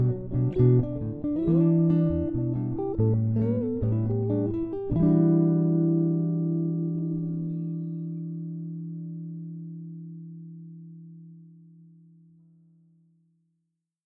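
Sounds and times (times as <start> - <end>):
bossa blues music: 0.0 - 10.2.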